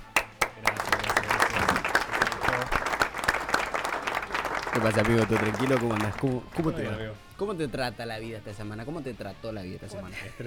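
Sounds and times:
small group applause: 0.0 - 6.8
speech: 4.8 - 10.4.

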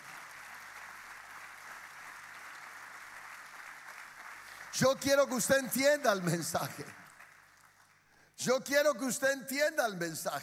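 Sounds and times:
audience applause: 0.0 - 8.0
speech: 4.8 - 7.0, 8.4 - 10.4.

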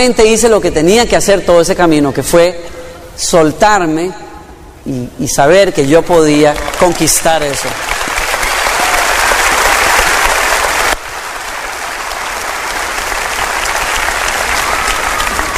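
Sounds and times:
speech: 0.0 - 4.2, 4.8 - 8.0
group applause: 6.5 - 15.5.

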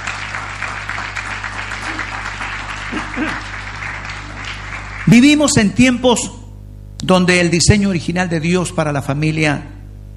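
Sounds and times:
audience applause: 0.0 - 5.6
speech: 3.2 - 3.5, 5.1 - 6.4, 7.0 - 9.8.

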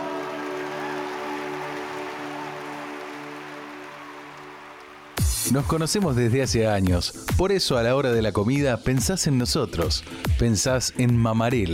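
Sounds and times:
applause: 0.0 - 6.4
speech: 5.5 - 11.7.

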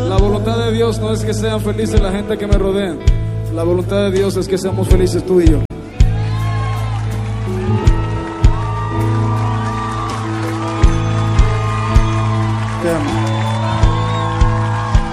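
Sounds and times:
speech: 0.7 - 5.7
whoops and shouts: 5.8 - 15.1
audience applause: 6.0 - 15.1.

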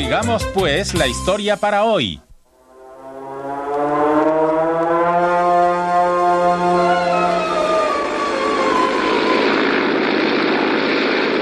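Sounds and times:
speech: 0.1 - 2.3
propeller airplane flying over the Rocky Mountains at 2,450 metres: 2.4 - 11.3.

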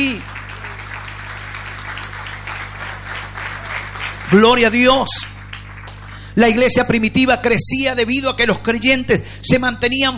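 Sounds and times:
audience applauding: 0.0 - 6.4
speech: 4.3 - 5.3, 6.4 - 10.1.

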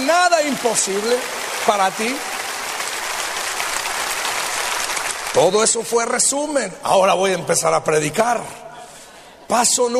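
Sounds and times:
church congregation applauding in thanks during a sermon: 0.0 - 6.1
speech: 0.3 - 2.4, 5.3 - 8.7, 9.5 - 9.9.

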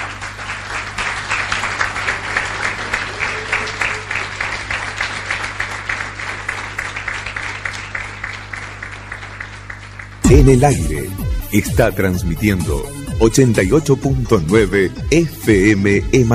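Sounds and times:
audience applauding: 0.0 - 11.1
speech: 10.4 - 16.3.

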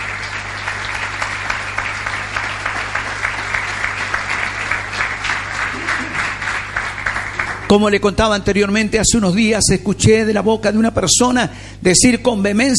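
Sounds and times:
crowd applause: 0.0 - 8.0
speech: 7.7 - 12.7.

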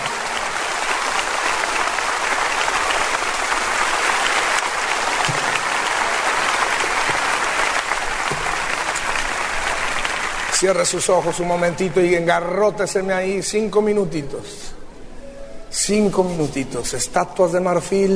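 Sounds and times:
audience applauding: 0.0 - 12.5
speech: 10.6 - 14.7, 15.9 - 18.1.

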